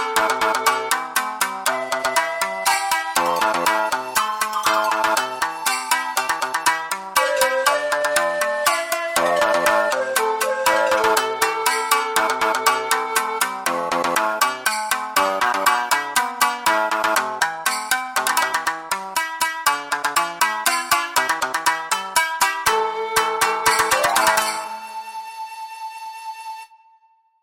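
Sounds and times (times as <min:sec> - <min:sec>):
shakuhachi in Japanese folk style: 0:00.0 - 0:14.1, 0:22.6 - 0:27.3
pan flute: 0:00.0 - 0:15.6, 0:22.5 - 0:27.4
shamisen in Japanese folk style: 0:00.0 - 0:26.8.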